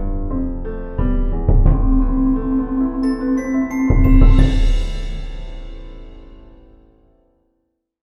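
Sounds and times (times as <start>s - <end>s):
marimba: 1.6s - 5.6s.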